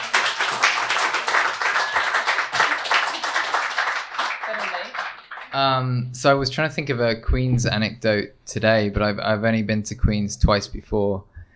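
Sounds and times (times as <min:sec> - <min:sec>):
round of applause from a crowd: 0:00.0 - 0:05.6
speech: 0:05.5 - 0:11.3.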